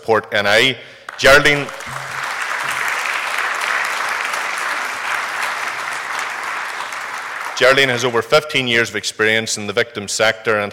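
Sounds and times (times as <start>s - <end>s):
speech: 0.0s - 2.1s, 7.6s - 10.7s
audience applause welcoming a victim support charity chief executive in Northern Ireland: 1.0s - 8.2s.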